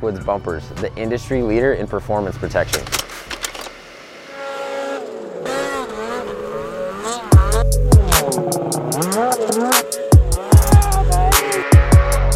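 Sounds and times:
speech: 0.0s - 3.0s
side-by-side utility vehicle engines revving at the Haydays event: 3.8s - 12.3s.

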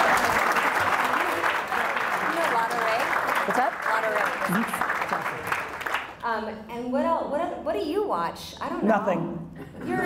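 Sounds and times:
stand-up comedy audience applause: 0.0s - 6.2s
speech: 6.4s - 10.0s.

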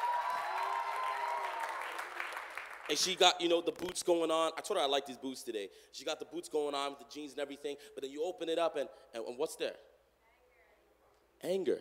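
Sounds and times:
audience clapping: 0.0s - 3.9s
speech: 2.9s - 9.9s, 11.4s - 11.7s.

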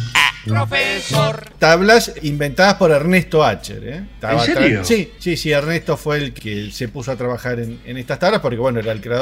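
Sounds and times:
squeaky toy horn honking: 0.1s - 0.6s
speech: 0.7s - 9.1s.

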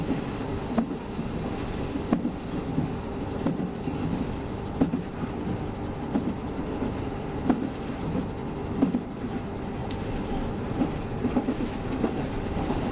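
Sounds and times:
KiHa 72 Yufuin no Mori express train rumble in motion: 0.0s - 12.9s
brief high squeals: 0.3s - 4.7s.

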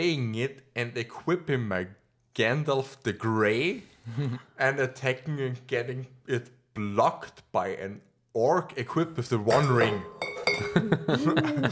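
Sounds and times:
speech: 0.0s - 11.6s
glass clinking: 9.4s - 11.2s
laughter: 10.6s - 11.6s.

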